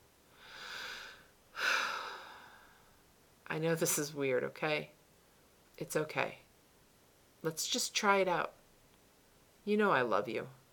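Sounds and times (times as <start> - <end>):
deep breath: 0.3 - 3.0
speech: 3.5 - 5.0, 5.8 - 6.4, 7.4 - 8.6, 9.6 - 10.6.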